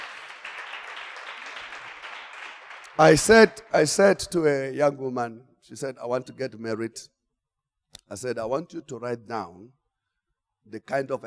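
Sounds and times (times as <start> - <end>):
audience clapping: 0.0 - 4.0
speech: 3.0 - 7.2, 8.1 - 9.8, 10.6 - 11.2.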